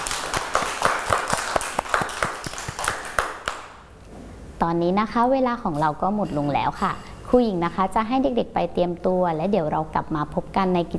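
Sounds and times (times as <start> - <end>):
children clapping for themselves: 0.0 - 3.8
speech: 4.6 - 10.9.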